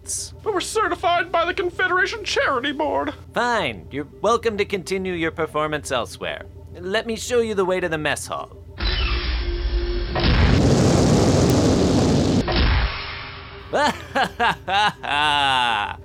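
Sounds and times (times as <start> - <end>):
speech: 0.1 - 8.6, 13.7 - 16.0
loud sustained rushing boom: 9.1 - 13.2
short bursts of voiced laughter: 13.7 - 16.0.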